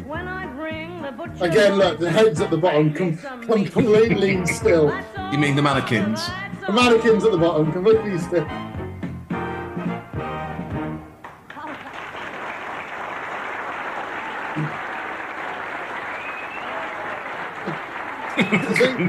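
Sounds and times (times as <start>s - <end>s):
speech: 1.1s - 8.7s
laughter: 1.4s - 2.8s, 3.5s - 5.0s, 11.5s - 12.2s, 14.5s - 14.8s, 16.7s - 19.0s
applause: 11.2s - 19.0s.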